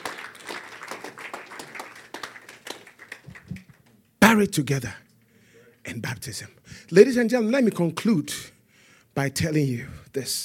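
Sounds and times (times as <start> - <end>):
audience applause: 0.0 - 3.9
speech: 4.3 - 5.0, 6.0 - 8.5, 9.2 - 10.4.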